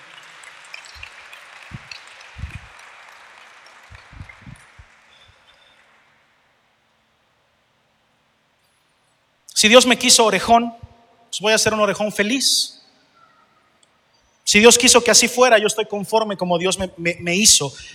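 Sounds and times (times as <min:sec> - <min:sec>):
audience applause: 0:00.0 - 0:06.4
low thumps: 0:01.7 - 0:02.7, 0:03.9 - 0:04.7
speech: 0:09.6 - 0:12.8, 0:14.5 - 0:17.9.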